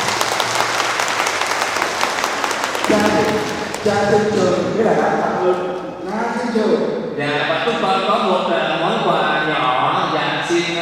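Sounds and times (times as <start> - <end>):
applause from audience: 0.0 - 4.6
speech: 2.9 - 10.7.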